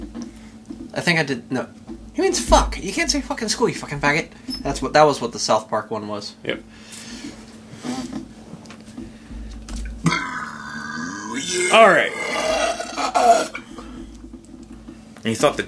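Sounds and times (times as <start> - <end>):
speech: 1.0 - 7.0, 11.6 - 13.6, 15.2 - 15.6
burping: 10.0 - 14.0.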